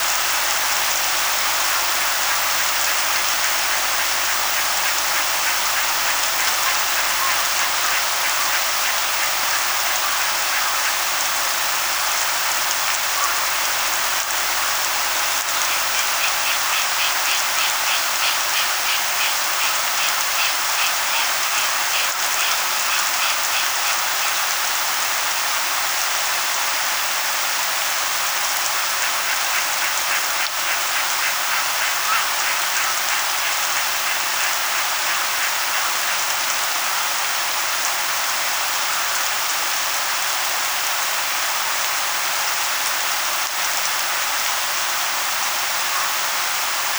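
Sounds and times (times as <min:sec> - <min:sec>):
rain: 0:00.0 - 0:46.9.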